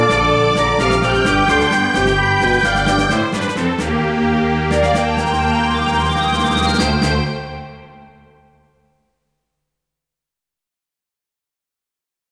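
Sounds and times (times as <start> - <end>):
title theme synthesizer version: 0.0 - 8.8.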